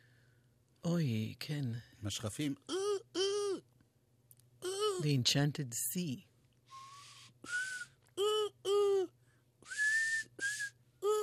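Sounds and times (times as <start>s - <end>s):
speech: 0.8s - 2.8s, 5.0s - 6.3s
whistled imitation of a seagull: 6.7s - 9.1s, 9.7s - 11.2s.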